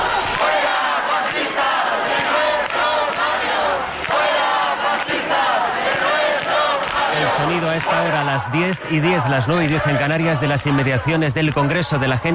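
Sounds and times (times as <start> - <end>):
crowd chanting at a peaceful sit-in outside the Congress: 0.0 - 12.3
shouts and cheers: 6.9 - 12.3
speech: 7.8 - 12.3.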